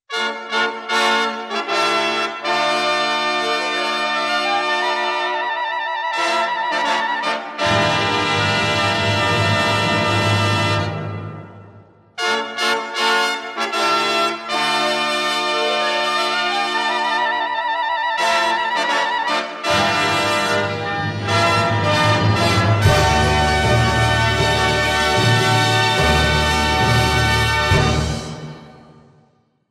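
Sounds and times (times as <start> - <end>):
fanfare: 0.1 - 29.2.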